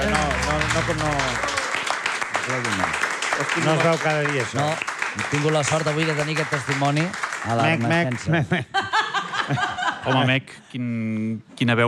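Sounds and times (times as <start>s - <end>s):
applause: 0.0s - 8.6s
speech: 0.8s - 1.5s, 2.4s - 8.8s, 9.5s - 11.8s
laughter: 8.2s - 10.4s.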